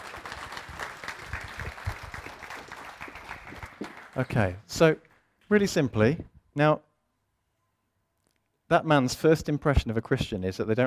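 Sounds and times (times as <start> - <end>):
audience applauding: 0.0 - 5.2
speech: 4.2 - 6.9, 8.7 - 10.8.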